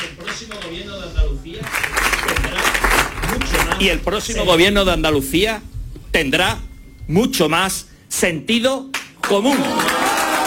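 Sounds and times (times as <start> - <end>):
crowd clapping: 0.0 - 0.8, 1.6 - 4.3, 8.9 - 10.4
speech: 0.4 - 2.0, 3.4 - 9.9.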